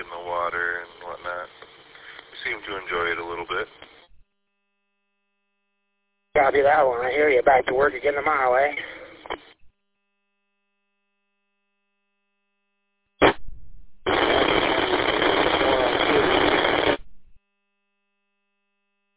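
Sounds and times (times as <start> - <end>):
rough garbled incoming radio station transmission: 0.0 - 4.1, 6.4 - 9.6, 14.1 - 17.0
speech: 6.6 - 9.0.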